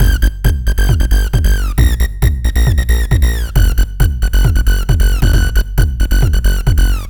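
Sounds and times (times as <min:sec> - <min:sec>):
synth bass: 0:00.0 - 0:07.0.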